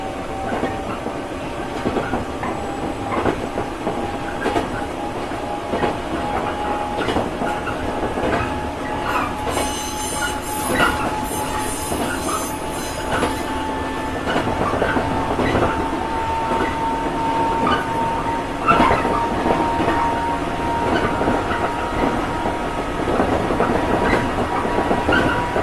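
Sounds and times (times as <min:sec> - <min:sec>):
train: 0:00.0 - 0:25.6.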